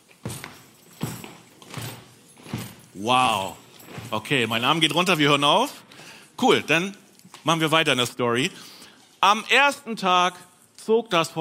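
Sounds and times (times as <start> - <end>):
audience stamping feet in steady rhythm: 0.0 - 4.7
speech: 3.0 - 5.8, 6.4 - 11.3.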